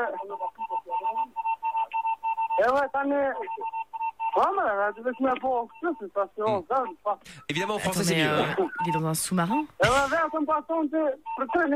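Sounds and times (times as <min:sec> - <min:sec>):
speech: 0:00.0 - 0:00.7, 0:02.6 - 0:03.7, 0:04.4 - 0:11.7
telephone beeps like Morse code: 0:00.0 - 0:06.1, 0:07.9 - 0:09.8, 0:11.2 - 0:11.7.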